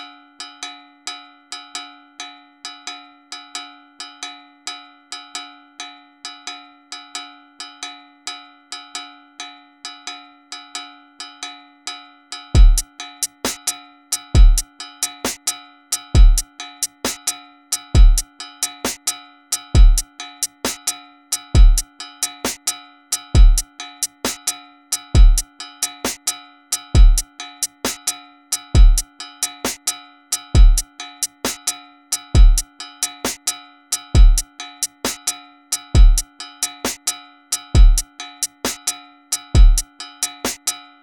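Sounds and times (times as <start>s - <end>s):
beats: 12.6s - 13.7s, 14.4s - 14.6s, 15.2s - 15.5s, 16.2s - 17.3s, 18.0s - 18.2s, 18.8s - 19.1s, 19.8s - 20.9s, 21.6s - 24.5s, 25.2s - 28.1s, 28.8s - 31.7s, 32.4s - 40.7s.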